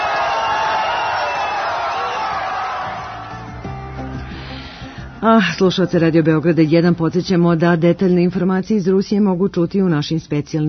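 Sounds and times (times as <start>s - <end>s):
football fans cheering Russia's fifth goal in the Kaliningrad fan zone: 0.0s - 4.3s
speech: 5.2s - 10.6s.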